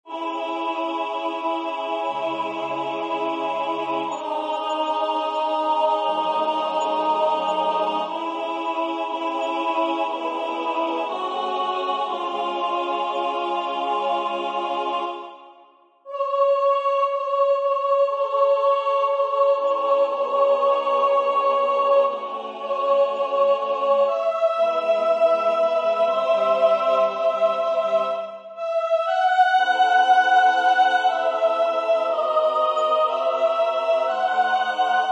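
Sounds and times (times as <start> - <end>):
soprano singing: 0.1 - 35.1.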